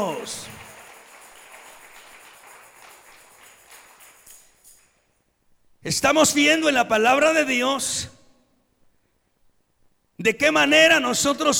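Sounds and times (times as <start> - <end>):
speech: 0.0 - 0.7, 5.8 - 8.2, 10.2 - 11.5
audience applause: 0.0 - 4.8.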